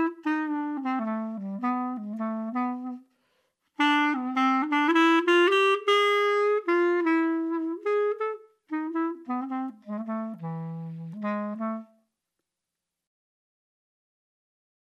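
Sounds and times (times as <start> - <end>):
improvised music: 0.0 - 3.0, 3.8 - 12.0.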